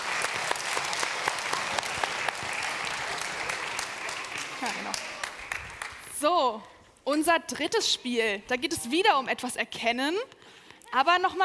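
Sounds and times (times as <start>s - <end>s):
audience applause: 0.0s - 6.1s
speech: 4.6s - 5.1s, 6.2s - 11.4s.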